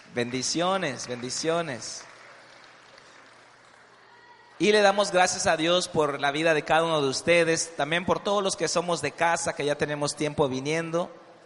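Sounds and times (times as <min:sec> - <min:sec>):
audience clapping: 0:00.0 - 0:05.8
speech: 0:00.2 - 0:02.1, 0:04.6 - 0:11.2.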